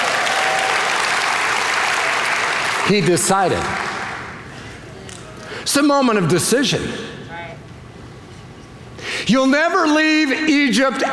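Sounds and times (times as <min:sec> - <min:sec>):
audience applause during a talk: 0:00.0 - 0:04.5
speech: 0:02.9 - 0:03.9, 0:05.6 - 0:07.1, 0:09.3 - 0:11.1.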